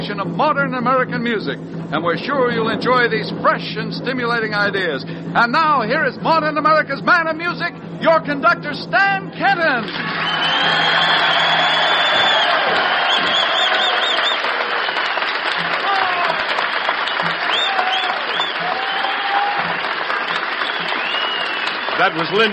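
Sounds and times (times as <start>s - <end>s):
speech: 0.0s - 11.5s, 22.0s - 22.5s
audience applause in a ballroom at the Carousel: 9.8s - 22.5s.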